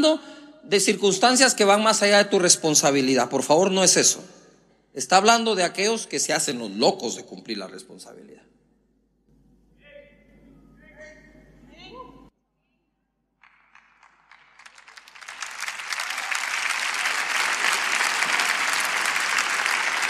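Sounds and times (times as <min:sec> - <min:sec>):
speech: 0:00.0 - 0:04.4, 0:05.0 - 0:08.5
audience applause: 0:13.4 - 0:20.0.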